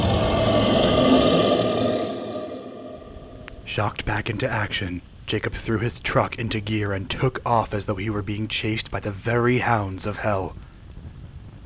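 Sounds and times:
monster's blood-curdling scream: 0.0 - 3.7
speech: 3.7 - 10.7.

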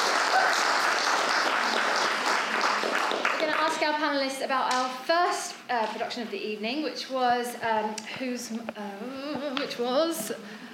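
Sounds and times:
round of applause: 0.0 - 3.9
speech: 3.9 - 10.6.

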